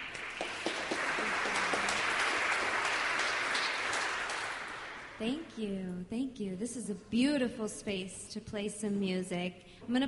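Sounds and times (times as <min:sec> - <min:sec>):
audience at the House of Mercy applauding to welcome a singer: 0:00.0 - 0:05.2
speech: 0:05.2 - 0:10.0.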